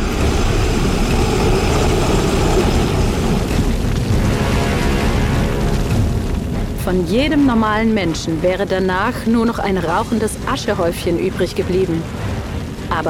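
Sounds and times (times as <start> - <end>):
dragon blowing a huge fountain of fire: 0.0 - 6.8
speech: 6.9 - 12.2.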